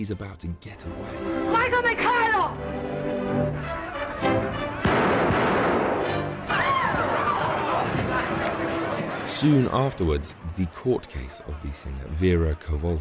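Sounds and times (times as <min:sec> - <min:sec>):
speech: 0:00.0 - 0:04.4, 0:09.2 - 0:12.9
gunshots: 0:04.8 - 0:09.2.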